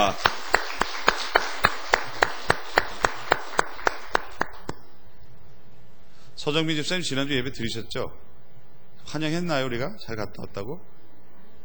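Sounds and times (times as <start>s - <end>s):
speech: 0.0s - 0.3s, 6.4s - 8.3s, 9.1s - 11.0s
audience applause: 0.0s - 4.8s.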